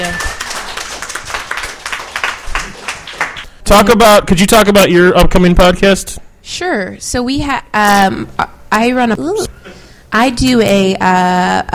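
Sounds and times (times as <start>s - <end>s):
audience clapping: 0.0s - 3.5s
speech: 3.7s - 11.7s.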